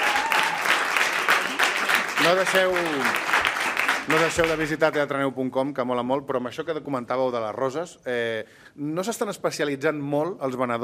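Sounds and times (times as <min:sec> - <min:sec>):
audience applause: 0:00.0 - 0:04.9
speech: 0:02.3 - 0:03.3, 0:04.0 - 0:10.8.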